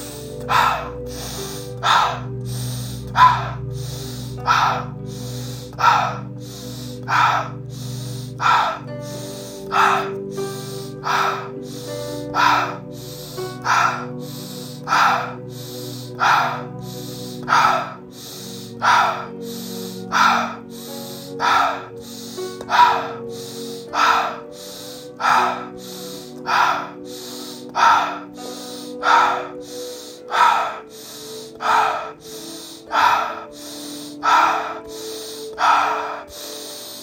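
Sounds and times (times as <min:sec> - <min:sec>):
rapid breathing exercise inhaling through nose and exhaling through mouth: 0:00.0 - 0:37.0.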